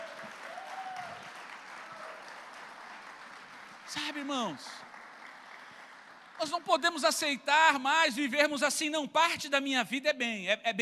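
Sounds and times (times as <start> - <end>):
audience applause: 0.0 - 7.1
speech: 3.9 - 4.9, 6.4 - 10.8.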